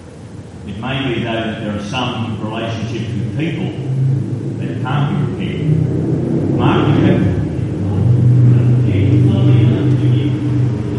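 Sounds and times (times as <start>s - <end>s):
speech: 0.7s - 7.4s
motorbike passing: 2.7s - 10.9s.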